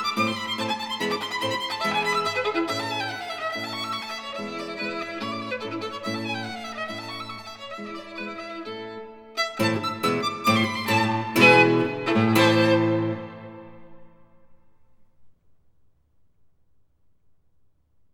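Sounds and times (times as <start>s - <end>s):
violin playing in A minor allegretto: 0.0s - 14.4s
guitar playing in A minor allegretto: 0.0s - 14.6s.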